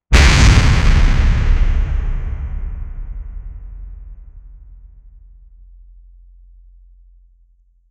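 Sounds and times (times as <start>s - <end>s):
viking horn blast impact: 0.1s - 5.4s.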